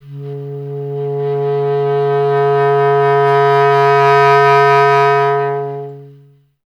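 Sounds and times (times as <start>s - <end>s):
clarinet: 0.0s - 6.6s.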